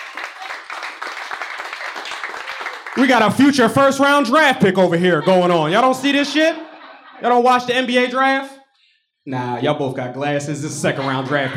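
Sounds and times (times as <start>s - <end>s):
audience clapping: 0.0s - 4.8s
speech: 3.0s - 6.6s, 7.2s - 8.6s, 9.2s - 11.5s
laughter: 3.0s - 8.5s, 10.6s - 11.5s.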